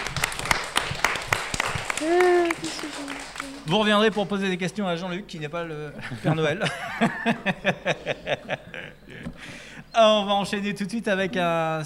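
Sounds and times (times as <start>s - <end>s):
audience applause: 0.0s - 4.6s
laughter: 1.7s - 3.2s, 6.0s - 9.4s
speech: 2.0s - 11.8s.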